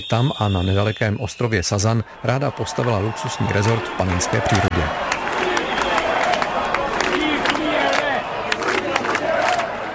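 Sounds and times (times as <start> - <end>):
speech: 0.0 - 5.2
crowd of demonstrators shouting: 2.2 - 9.9.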